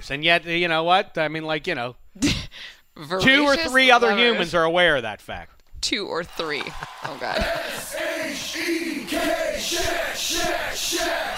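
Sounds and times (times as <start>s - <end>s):
speech: 0.0s - 2.4s, 3.0s - 11.3s
laughter: 6.4s - 11.3s
small crowd cheering and shouting with whoops and yells: 6.4s - 11.3s.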